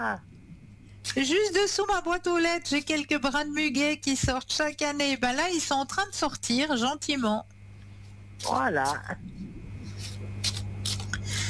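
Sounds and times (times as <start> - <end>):
speech: 0.0 - 0.3, 1.0 - 7.6, 8.4 - 9.4
steady low hum: 0.0 - 11.4
deck of playing cards being shuffled by hand: 9.9 - 11.2.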